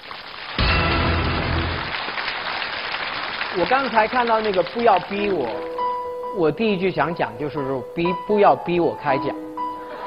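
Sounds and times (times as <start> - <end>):
audience applause: 0.0 - 5.7
speech: 3.6 - 9.4.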